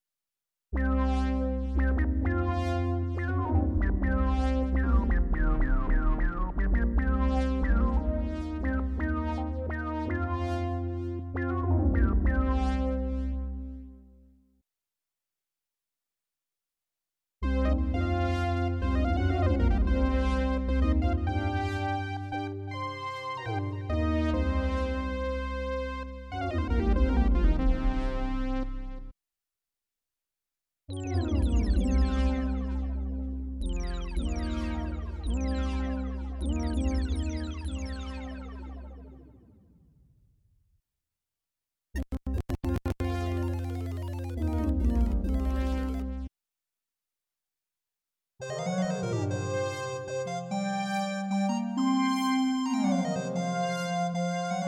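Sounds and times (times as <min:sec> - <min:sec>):
Korg iMS20 synthesizer on iPad: 0:00.8 - 0:14.2, 0:17.4 - 0:29.1, 0:30.9 - 0:39.9, 0:42.0 - 0:46.3, 0:48.4 - 0:54.6.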